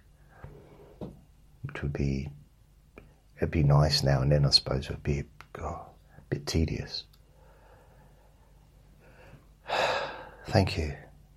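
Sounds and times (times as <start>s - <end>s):
speech: 1.8s - 2.4s, 3.4s - 7.1s, 10.4s - 11.0s
sharp intake of breath: 9.0s - 10.4s.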